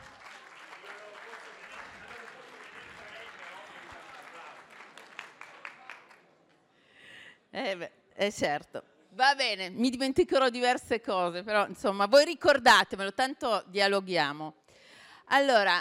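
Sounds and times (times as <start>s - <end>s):
audience applause: 0.0s - 6.2s
speech: 7.6s - 14.6s, 15.3s - 15.8s.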